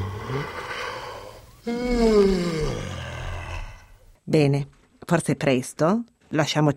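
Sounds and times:
yawning: 0.0 - 4.1
speech: 1.6 - 2.6, 4.3 - 6.7.

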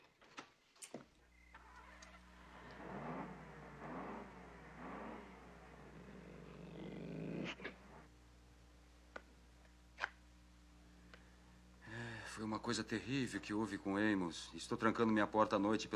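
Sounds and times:
dog growling: 1.8 - 8.1
speech: 12.4 - 15.9.

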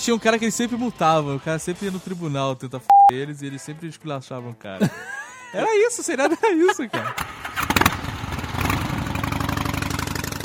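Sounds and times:
speech: 0.0 - 7.7
laughter: 4.8 - 7.2
motorcycle engine revving: 7.1 - 10.4.

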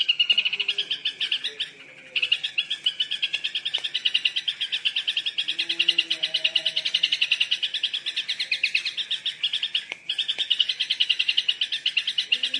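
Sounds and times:
Yellow-vented bulbul singing a long rapid chatter of harsh bubbly notes: 0.0 - 12.5.

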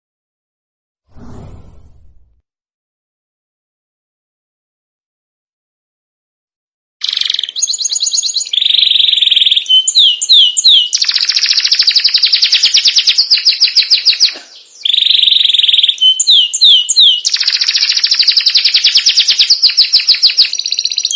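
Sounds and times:
Belgian canary singing trills and whistled notes: 7.0 - 21.1.

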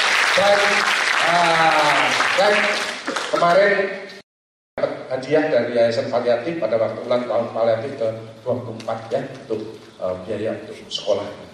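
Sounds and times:
audience voices cheering at a medical lecture: 0.0 - 3.5
audience applause at a medical lecture: 0.0 - 3.6
speech: 0.4 - 4.2, 4.8 - 11.5.

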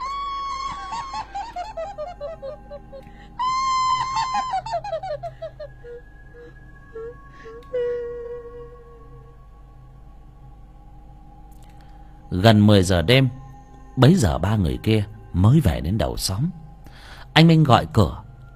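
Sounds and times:
eerie cackling laughter: 0.0 - 7.7
speech: 12.4 - 13.4, 14.0 - 16.6, 17.4 - 18.2.

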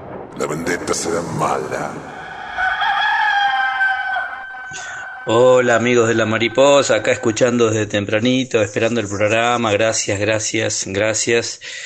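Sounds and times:
speech: 0.4 - 2.2, 4.7 - 11.8
rooster crowing: 2.0 - 8.0.

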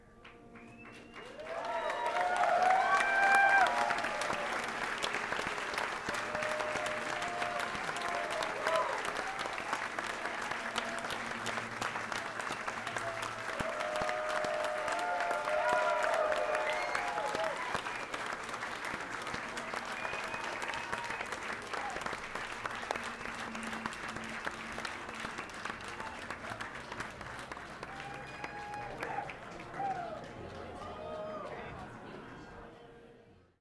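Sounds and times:
applause: 0.0 - 32.0.

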